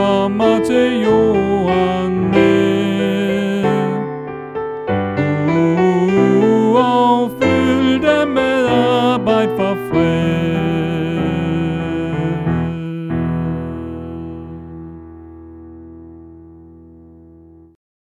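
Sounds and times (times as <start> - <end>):
soprano voice: 0.0 - 4.3, 5.1 - 15.1.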